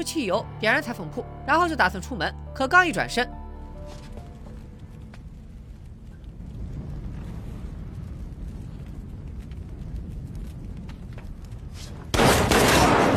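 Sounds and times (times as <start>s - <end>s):
speech: 0.0s - 4.0s
gunfire in a film scene: 12.1s - 13.1s.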